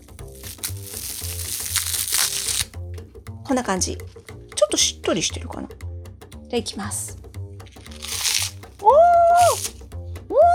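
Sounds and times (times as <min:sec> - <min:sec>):
sakura fugashi wheat gluten snack crackling as it breaks: 0:00.2 - 0:02.8, 0:07.7 - 0:08.7, 0:09.3 - 0:09.8
speech: 0:03.5 - 0:05.9, 0:06.5 - 0:07.2.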